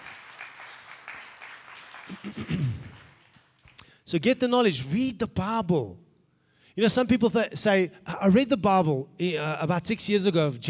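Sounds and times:
crowd applause: 0.0 - 3.8
speech: 2.1 - 3.0, 4.1 - 6.0, 6.8 - 10.6.

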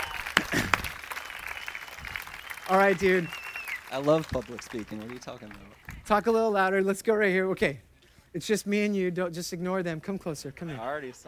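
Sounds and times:
crowd applause: 0.0 - 6.0
speech: 2.7 - 11.2.

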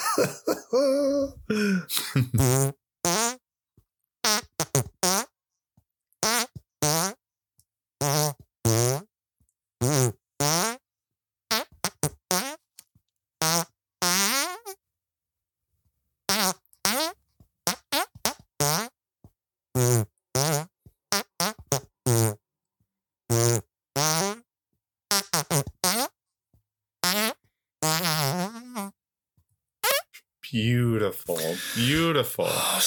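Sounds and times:
laughter: 0.0 - 2.4, 31.1 - 32.8
speech: 0.2 - 2.8
buzzy fart noises: 1.5 - 3.4, 4.2 - 5.3, 6.2 - 7.2, 8.0 - 9.1, 9.8 - 10.8, 11.5 - 12.6, 13.4 - 14.8, 16.3 - 19.0, 19.8 - 22.4, 23.3 - 24.5, 25.1 - 26.2, 27.0 - 29.0, 29.8 - 32.8.

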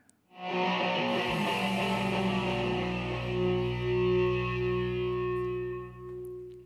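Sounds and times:
rock song with heavily distorted electric guitar: 0.4 - 6.6.

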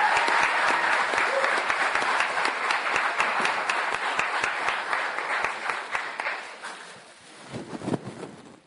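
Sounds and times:
audience applause and clapping: 0.0 - 6.8.

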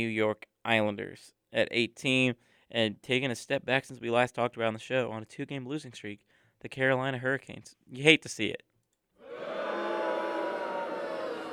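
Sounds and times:
speech: 0.0 - 8.7
crowd roar sound effect: 9.2 - 11.5.

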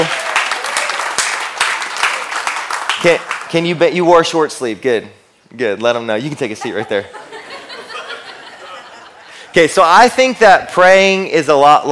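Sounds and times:
crowd applause: 0.0 - 3.5
speech: 3.0 - 7.2, 9.6 - 11.9
laughter: 6.3 - 9.6.

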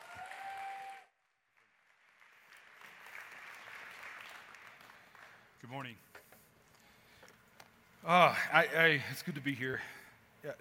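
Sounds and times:
church congregation applause welcoming a guest speaker: 0.0 - 5.5
speech: 5.6 - 6.3, 8.0 - 10.5.

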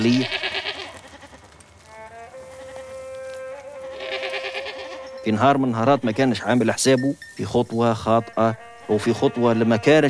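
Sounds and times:
speech: 0.0 - 0.4, 5.2 - 10.0
sheep bleating while grazing: 0.0 - 5.2, 7.7 - 10.0
insects buzzing: 0.0 - 10.0.

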